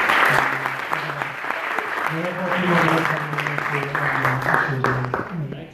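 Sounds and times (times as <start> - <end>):
round of applause for panel: 0.0 - 5.6.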